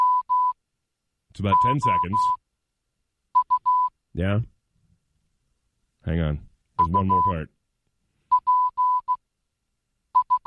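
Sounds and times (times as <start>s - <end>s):
Morse code message beeps: 0.0s - 0.6s, 1.5s - 2.4s, 3.4s - 3.9s, 6.8s - 7.4s, 8.3s - 9.2s, 10.2s - 10.4s
speech: 1.4s - 2.4s, 4.2s - 4.5s, 6.0s - 7.6s.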